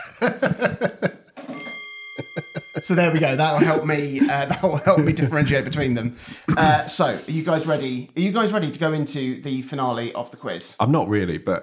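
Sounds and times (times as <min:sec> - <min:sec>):
laughter: 0:00.0 - 0:01.4, 0:02.2 - 0:07.8
speech: 0:00.2 - 0:01.0, 0:02.8 - 0:11.6
Tibetan singing bowl struck: 0:01.4 - 0:03.8.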